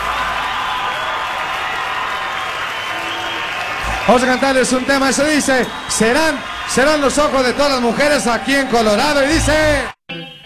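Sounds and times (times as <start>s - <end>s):
audience applause: 0.0s - 9.9s
speech: 4.1s - 10.3s.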